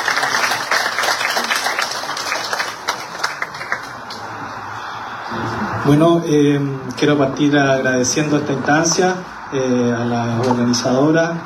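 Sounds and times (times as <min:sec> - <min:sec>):
audience applause: 0:00.0 - 0:05.3
speech: 0:05.8 - 0:11.4.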